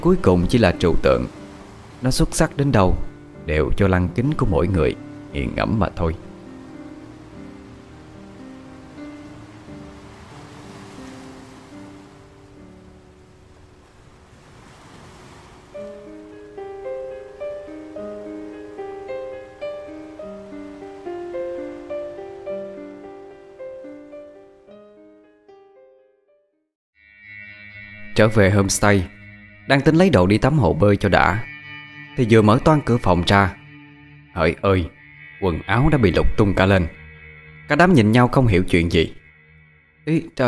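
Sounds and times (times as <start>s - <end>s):
speech: 0.0s - 1.4s, 2.0s - 6.3s, 28.2s - 31.5s, 32.2s - 33.6s, 34.4s - 37.0s, 37.7s - 39.2s, 40.0s - 40.4s
ocean waves washing onto the shore: 0.1s - 3.2s, 4.3s - 23.2s.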